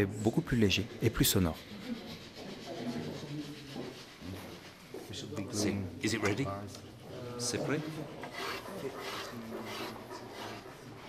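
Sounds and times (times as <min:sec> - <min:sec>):
speech: 0:00.0 - 0:02.0, 0:05.2 - 0:10.0
hand file rasping on wood rounding the body of a guitar: 0:00.5 - 0:04.9, 0:08.1 - 0:11.0.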